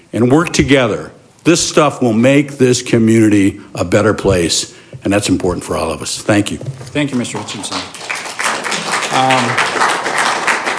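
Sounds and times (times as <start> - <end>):
speech: 0.1 - 8.2, 9.2 - 9.9
audience clapping: 6.9 - 10.7.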